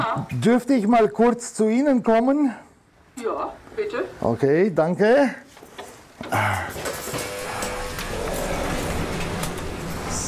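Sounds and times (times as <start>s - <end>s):
speech: 0.2s - 5.4s, 6.2s - 6.9s
elevator mechanical rumble and whir: 7.0s - 10.2s.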